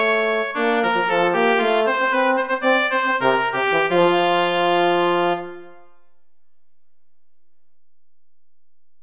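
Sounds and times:
Christmas song: 0.0s - 6.4s.

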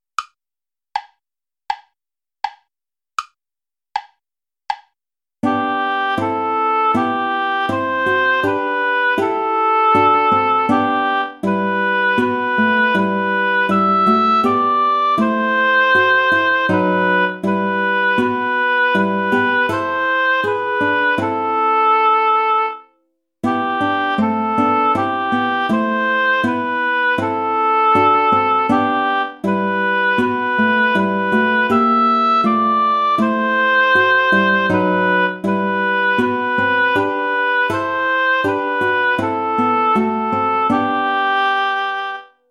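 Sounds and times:
play-along backing track without guitar: 4.0s - 42.4s.

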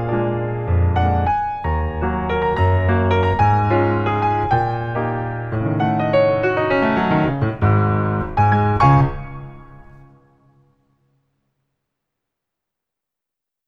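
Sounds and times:
christmas piano music: 0.0s - 10.8s.

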